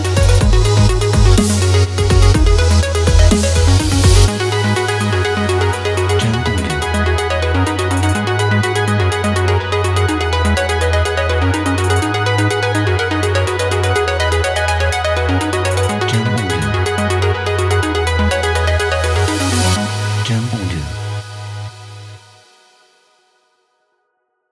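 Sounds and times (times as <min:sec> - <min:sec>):
inspirational EDM electronica: 0:00.0 - 0:20.9.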